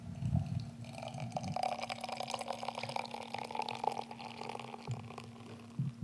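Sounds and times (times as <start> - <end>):
beer pouring from a keg tap into a glass: 0.1 - 5.8.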